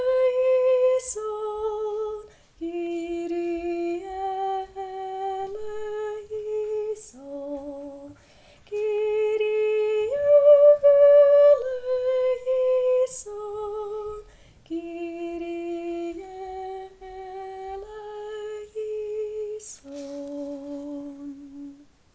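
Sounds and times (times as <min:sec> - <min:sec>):
soprano singing a Kyrie: 0:00.0 - 0:22.0.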